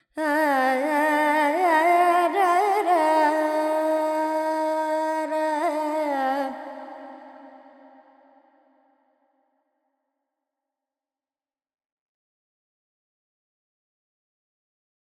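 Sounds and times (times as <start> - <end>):
Carnatic female vocal alap in Lydian mode with effects: 0.0 - 8.4.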